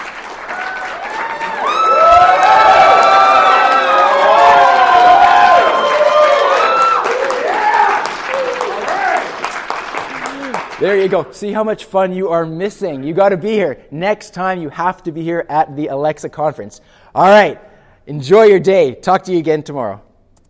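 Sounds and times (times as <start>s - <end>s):
audience applause at the Alexa conference in Chattanooga: 0.0s - 11.1s
audience whooping and shouting at the Alexa conference: 0.4s - 9.4s
speech: 10.8s - 20.1s.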